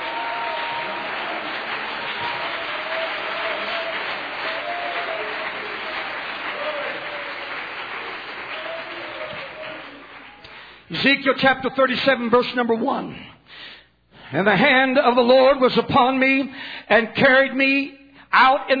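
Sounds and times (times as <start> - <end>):
audience clapping: 0.0 - 10.9
speech: 10.9 - 13.3, 14.3 - 18.7.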